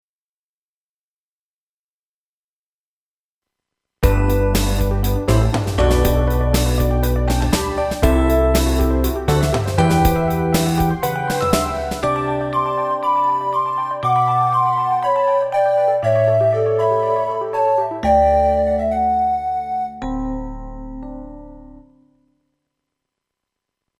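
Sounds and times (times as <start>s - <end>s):
instrumental music: 4.0s - 22.4s.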